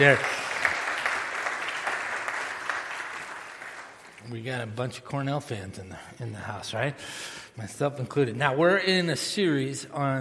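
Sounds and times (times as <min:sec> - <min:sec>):
speech: 0:00.0 - 0:00.3, 0:04.3 - 0:10.1
audience applause: 0:00.0 - 0:04.2.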